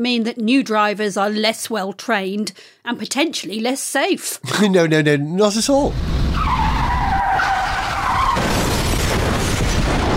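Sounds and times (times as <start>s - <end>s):
speech: 0.0s - 6.5s
truck tyres screeching: 5.9s - 10.1s
heavy crash with clatter: 7.6s - 10.1s.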